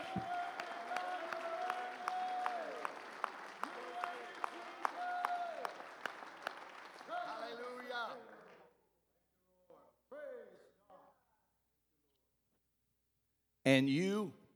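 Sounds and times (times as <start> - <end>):
audience clapping hands: 0.0 - 8.7
speech: 0.2 - 0.4, 13.7 - 14.4.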